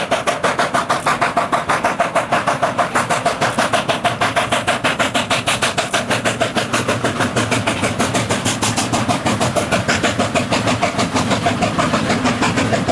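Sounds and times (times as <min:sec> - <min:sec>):
steam locomotives: 0:00.0 - 0:12.8.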